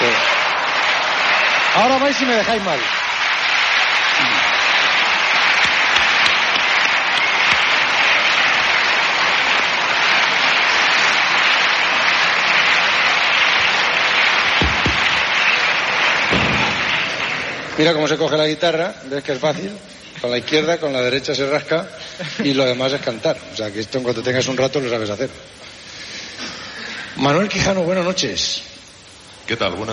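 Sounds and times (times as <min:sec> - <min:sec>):
crowd applauding: 0:00.0 - 0:18.6
speech: 0:01.8 - 0:03.0, 0:17.8 - 0:25.7, 0:27.2 - 0:28.8, 0:29.5 - 0:29.9.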